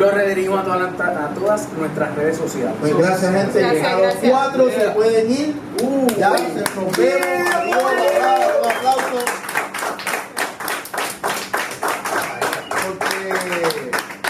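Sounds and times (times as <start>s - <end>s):
speech: 0.0s - 9.4s
audience clapping: 5.8s - 14.2s.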